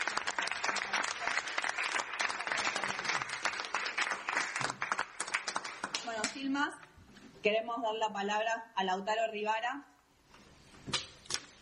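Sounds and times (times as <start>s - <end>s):
audience applause: 0.0s - 6.1s
speech: 6.4s - 9.9s.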